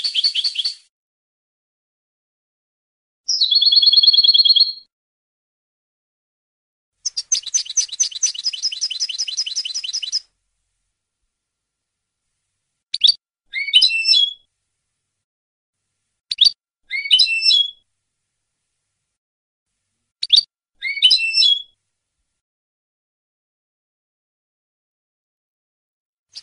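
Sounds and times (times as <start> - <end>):
European goldfinch song: 0.0 - 0.9, 3.3 - 4.9, 7.0 - 10.3, 12.9 - 14.5, 16.3 - 17.9, 20.2 - 21.8.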